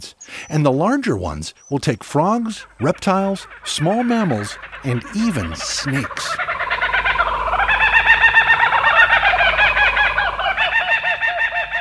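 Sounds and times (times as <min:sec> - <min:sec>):
speech: 0:00.0 - 0:06.4
Australia's laughing kookaburra call: 0:02.5 - 0:11.7.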